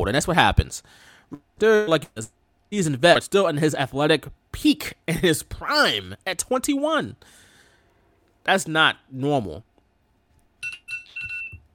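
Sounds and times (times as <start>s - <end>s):
speech: 0.0s - 7.4s, 8.4s - 9.7s
phone alarm going off: 10.6s - 11.7s.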